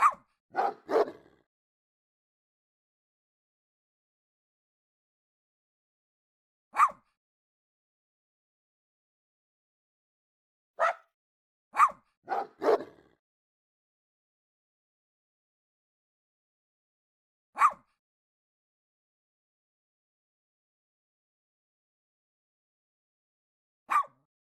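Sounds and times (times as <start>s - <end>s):
dog barking: 0.0s - 1.4s, 6.8s - 7.0s, 10.8s - 11.1s, 11.8s - 13.1s, 17.6s - 17.9s, 23.9s - 24.2s.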